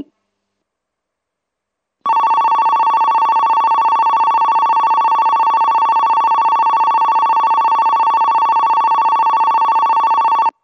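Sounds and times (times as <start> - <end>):
Kogota platform 3 sounds: 2.1 - 10.6.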